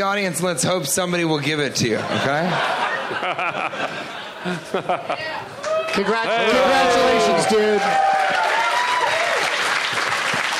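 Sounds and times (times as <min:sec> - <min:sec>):
speech: 0:00.0 - 0:08.4
laughter: 0:01.9 - 0:07.4
audience applause: 0:05.6 - 0:10.5.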